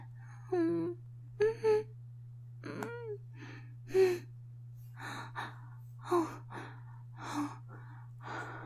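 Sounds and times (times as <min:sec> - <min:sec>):
steady low hum: 0:00.0 - 0:08.6
heavy breathy gasps and exhalations: 0:04.9 - 0:08.6.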